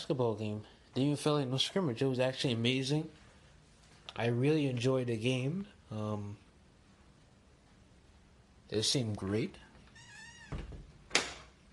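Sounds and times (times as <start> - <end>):
speech: 0.0 - 3.2, 4.1 - 6.4, 8.7 - 9.6
door squealing: 9.9 - 10.8
door shutting with a thud: 10.4 - 11.5.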